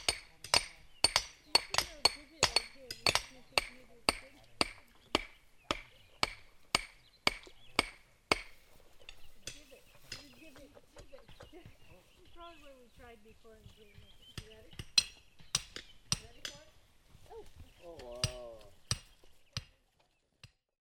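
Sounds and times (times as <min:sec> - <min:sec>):
planting a cottonwood tree: 0:00.0 - 0:20.8.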